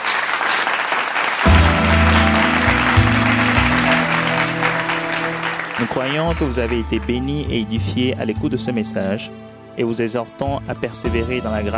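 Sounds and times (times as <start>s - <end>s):
audience applauding and cheering: 0.0s - 7.3s
speech: 6.0s - 11.7s.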